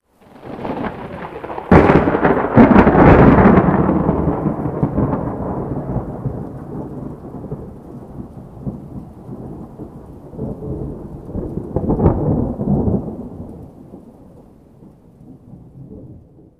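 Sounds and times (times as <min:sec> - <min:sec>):
lightning strike: 0:00.4 - 0:13.4.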